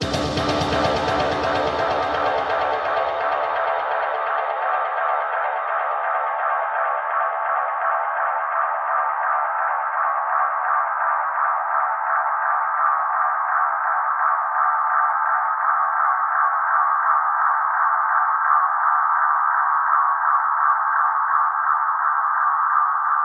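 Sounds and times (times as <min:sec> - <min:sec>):
reverb atmospheres: 0:00.0 - 0:23.2.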